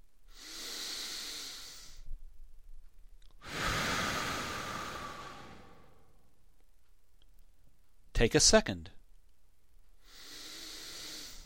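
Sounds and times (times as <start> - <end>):
deep slow breath: 0.3 - 2.1, 3.4 - 6.3, 10.0 - 11.4
speech: 8.2 - 9.0.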